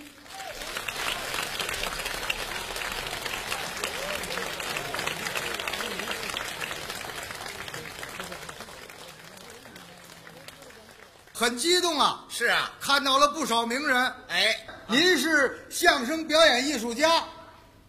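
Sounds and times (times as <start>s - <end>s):
audience clapping at a commemorative comedy performance: 0.0s - 12.0s
speech: 11.4s - 17.3s.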